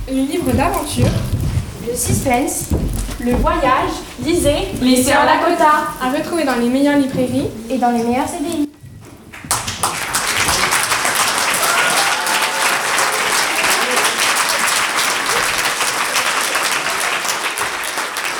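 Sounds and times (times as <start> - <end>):
speech: 0.1 - 8.6
audience applauding students: 9.3 - 18.3.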